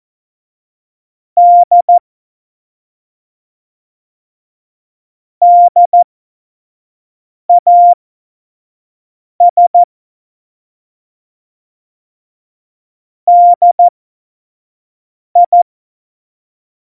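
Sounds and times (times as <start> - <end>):
Morse code tones: 1.5 - 1.9, 5.4 - 6.0, 7.5 - 8.0, 13.3 - 13.9, 15.4 - 15.6.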